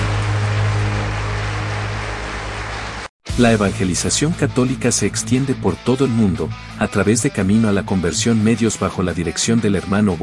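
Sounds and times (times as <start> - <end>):
crowd clapping: 0.0 - 3.1
speech: 3.4 - 10.2.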